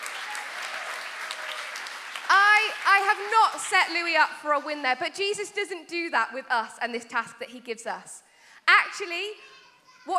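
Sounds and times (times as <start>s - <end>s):
crowd applause: 0.0s - 3.6s
speech: 3.0s - 10.1s.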